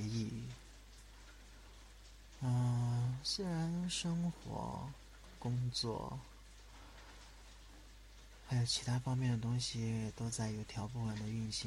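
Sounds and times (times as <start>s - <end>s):
rain falling at night: 0.0s - 11.6s
speech: 3.2s - 6.3s, 8.5s - 11.6s.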